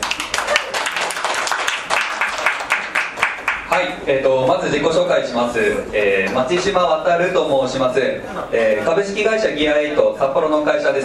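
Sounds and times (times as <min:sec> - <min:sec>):
audience applause: 0:00.0 - 0:03.7
speech: 0:03.8 - 0:11.0.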